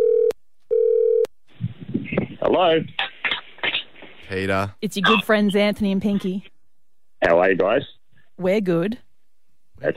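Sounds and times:
phone ringback tones: 0.0 - 1.3
speech: 2.5 - 3.0, 4.3 - 6.5, 7.2 - 9.0, 9.8 - 9.9.

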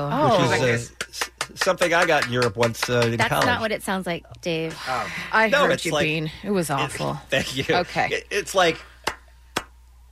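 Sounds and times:
speech: 0.0 - 8.9
Viking clap, slow unrhythmic clapping: 0.9 - 3.7, 9.0 - 9.8.

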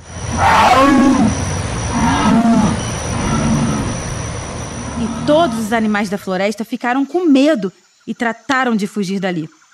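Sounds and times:
jaguar roar: 0.2 - 6.0
speech: 5.3 - 9.6.

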